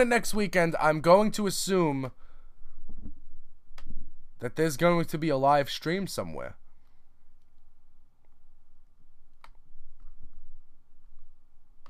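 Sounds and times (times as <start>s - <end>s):
speech: 0.0s - 2.2s, 4.4s - 6.6s
faint steady noise: 0.0s - 11.8s
computer mouse clicks: 9.3s - 10.2s.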